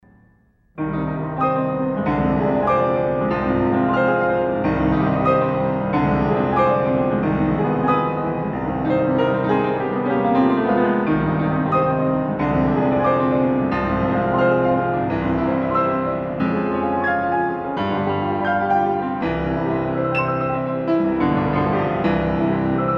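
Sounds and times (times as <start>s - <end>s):
piano etude in C minor: 0.0s - 22.9s.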